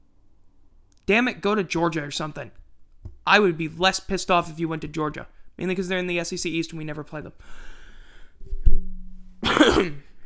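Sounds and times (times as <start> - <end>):
speech: 1.1 - 2.6, 3.2 - 7.8, 9.6 - 10.1
person coughing: 9.4 - 10.1.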